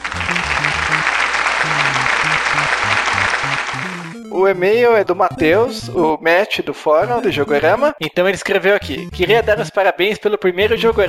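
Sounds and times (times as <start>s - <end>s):
applause sound effect: 0.0s - 4.2s
speech: 4.3s - 11.0s.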